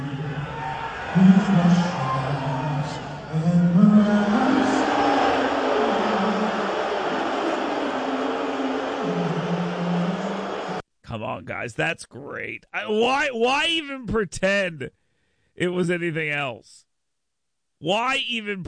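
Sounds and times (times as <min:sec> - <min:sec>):
large crowd booing: 0:00.0 - 0:10.8
speech: 0:01.2 - 0:01.9, 0:11.4 - 0:15.0, 0:15.6 - 0:16.9, 0:17.8 - 0:18.6.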